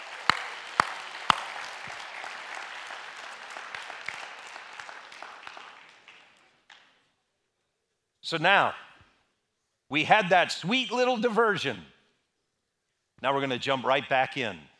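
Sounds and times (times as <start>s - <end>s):
audience applauding: 0.0s - 6.8s
speech: 8.3s - 8.8s, 9.9s - 11.9s, 13.2s - 14.7s.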